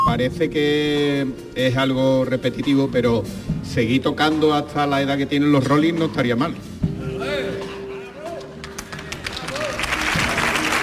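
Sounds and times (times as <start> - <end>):
speech: 0.1 - 6.7
audience ovation applause: 8.6 - 10.8.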